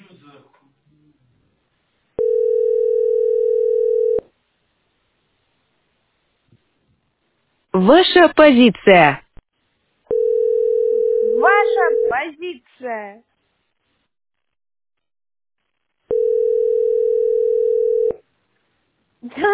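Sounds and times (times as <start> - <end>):
telephone ringing tones on the line: 2.2 - 4.3, 10.1 - 12.2, 16.1 - 18.2
speech: 7.8 - 9.2, 12.4 - 13.3, 19.2 - 19.5.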